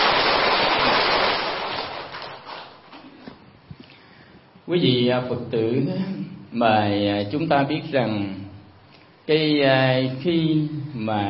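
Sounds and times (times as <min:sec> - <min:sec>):
audience applause: 0:00.0 - 0:02.8
speech: 0:04.7 - 0:08.4, 0:09.3 - 0:11.2.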